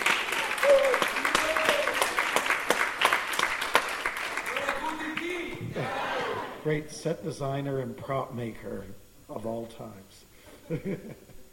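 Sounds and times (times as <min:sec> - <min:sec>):
group of people applauding: 0:00.0 - 0:06.6
speech: 0:06.7 - 0:11.3.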